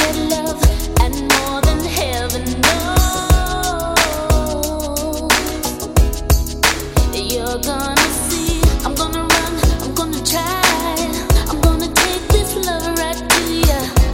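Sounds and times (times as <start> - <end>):
90s drum beat: 0.0 - 2.0, 2.7 - 4.7, 5.3 - 7.3, 8.0 - 14.1.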